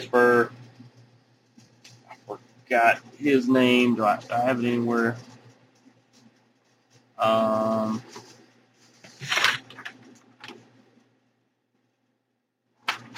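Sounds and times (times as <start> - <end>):
speech: 0.0 - 0.6, 2.7 - 5.3, 7.2 - 8.2
paper being shuffled and handled: 0.8 - 10.8.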